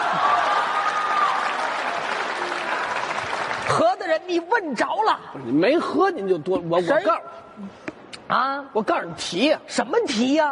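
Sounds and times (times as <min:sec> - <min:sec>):
audience applause: 0:00.0 - 0:04.2
speech: 0:03.7 - 0:10.5.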